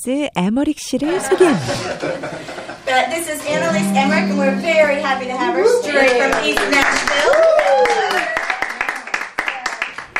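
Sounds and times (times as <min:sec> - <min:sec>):
speech: 0:00.0 - 0:08.4
laughter: 0:01.1 - 0:03.0
small audience clapping: 0:06.0 - 0:10.1
person cheering: 0:07.2 - 0:08.3.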